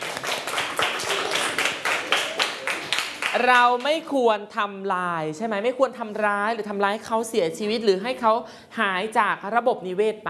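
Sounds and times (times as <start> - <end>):
classroom clapping: 0.0 - 4.0
speech: 3.4 - 10.2.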